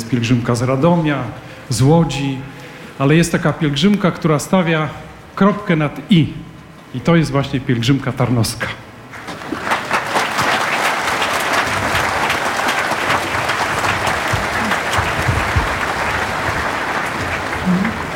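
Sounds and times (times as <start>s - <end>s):
speech: 0.1s - 8.9s
sustained applause from a large crowd: 9.1s - 18.1s.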